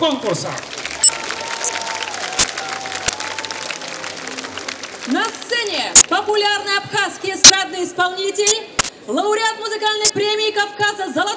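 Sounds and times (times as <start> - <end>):
speech: 0.0 - 0.8, 5.0 - 11.3
festival audience applause: 0.3 - 6.1.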